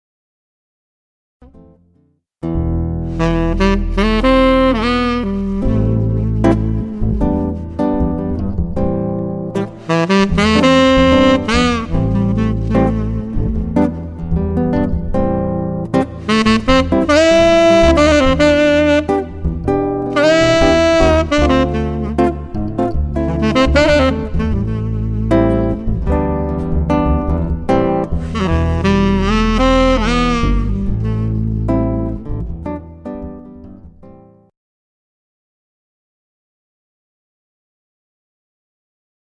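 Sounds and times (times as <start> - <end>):
jazz trio playing: 2.9 - 33.7.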